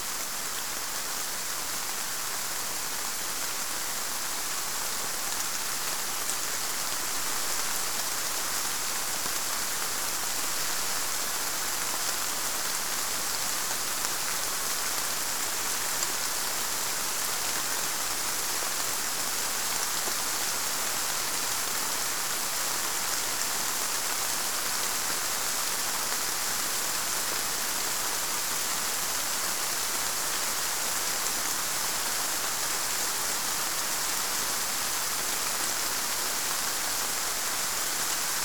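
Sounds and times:
rain: 0:00.0 - 0:38.4.

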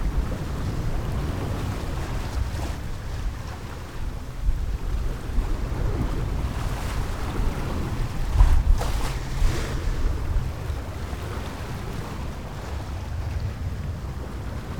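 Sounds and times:
sailboat general atmosphere: 0:00.0 - 0:14.7
waves around a sailboat: 0:00.0 - 0:14.7.

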